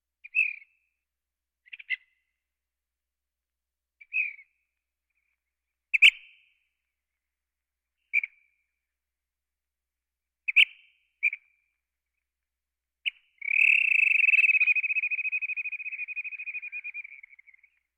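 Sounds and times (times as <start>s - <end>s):
birds: 0.2s - 0.8s, 1.6s - 2.3s, 4.0s - 4.6s, 10.5s - 11.7s, 13.0s - 17.9s.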